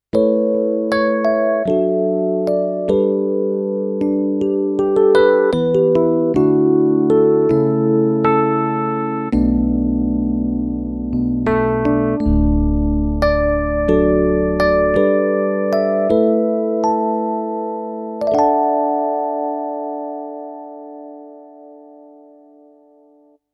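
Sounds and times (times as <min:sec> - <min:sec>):
Yamaha P-S500 suitcase electric piano: 0:00.0 - 0:23.4.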